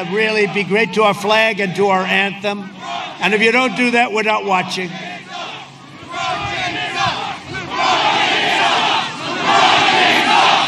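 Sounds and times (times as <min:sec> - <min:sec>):
speech: 0:00.0 - 0:05.1
stadium crowd chanting: 0:02.6 - 0:04.0, 0:04.7 - 0:10.6.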